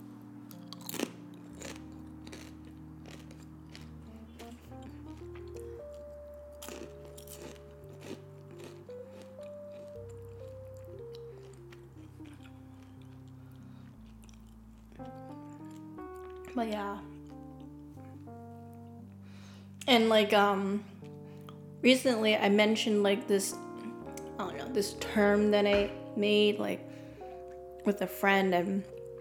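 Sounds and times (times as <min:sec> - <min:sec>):
quiet music: 0:00.0 - 0:29.1
crunchy chewing of homemade zucchini chips and kale chips: 0:00.5 - 0:19.0
speech: 0:16.6 - 0:17.1, 0:19.9 - 0:20.9, 0:21.8 - 0:23.6, 0:24.8 - 0:26.8, 0:27.9 - 0:28.9.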